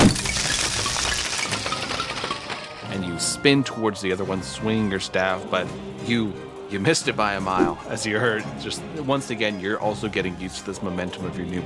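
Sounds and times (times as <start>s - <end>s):
skeleton bones clattering to the ground: 0.0s - 2.9s
speech: 3.2s - 11.6s.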